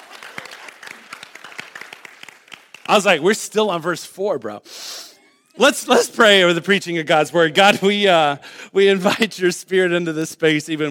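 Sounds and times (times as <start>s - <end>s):
audience applause: 0.0s - 3.1s
speech: 2.9s - 5.0s, 5.6s - 10.8s.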